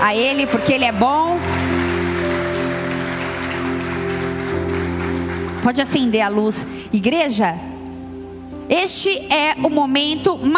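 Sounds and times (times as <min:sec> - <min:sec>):
speech: 0:00.0 - 0:01.5, 0:05.6 - 0:07.7, 0:08.7 - 0:10.5
audience clapping loudly: 0:00.0 - 0:06.8
sustained keyboard chords: 0:00.0 - 0:10.5.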